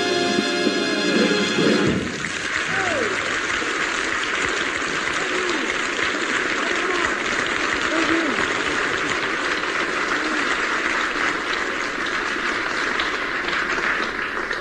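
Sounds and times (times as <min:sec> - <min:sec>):
applause: 0:00.1 - 0:14.5.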